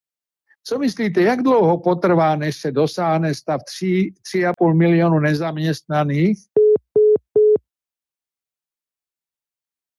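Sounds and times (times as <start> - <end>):
speech: 0.6 - 6.6
disconnect tone after a cut-off phone call: 6.6 - 7.6.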